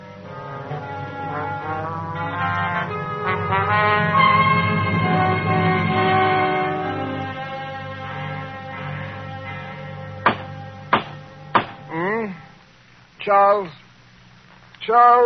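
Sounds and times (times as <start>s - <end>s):
steady low hum: 0.0s - 14.7s
knocking on a door: 10.2s - 11.8s
person calling out: 11.9s - 12.5s.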